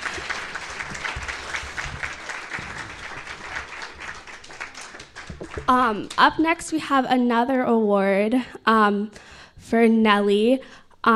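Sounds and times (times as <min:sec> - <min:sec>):
audience applause for Teaching Excellence Awards winners: 0:00.0 - 0:05.7
speech: 0:05.7 - 0:11.1.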